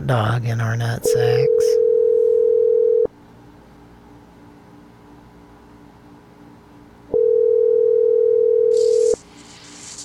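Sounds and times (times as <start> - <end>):
speech: 0.1 - 1.8
telephone ringing tone of an outgoing call: 1.2 - 3.1, 7.1 - 9.2.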